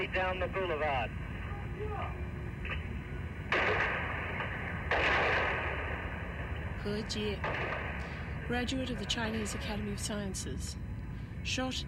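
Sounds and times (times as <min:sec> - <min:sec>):
speech: 0:00.0 - 0:02.8, 0:06.8 - 0:10.8, 0:11.4 - 0:11.8
tank machine gun fire: 0:03.5 - 0:06.0, 0:07.4 - 0:08.0.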